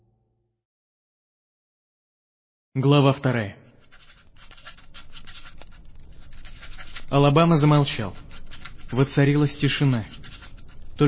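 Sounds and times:
speech: 2.8s - 3.6s, 7.1s - 8.2s, 8.9s - 10.2s
pencil scratching on paper: 3.7s - 11.0s.

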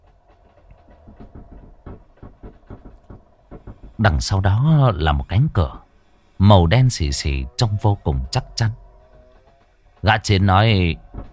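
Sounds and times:
gears clacking as hidden bookshelf opens: 0.0s - 11.3s
speech: 4.0s - 5.8s, 6.4s - 8.8s, 10.0s - 11.0s.

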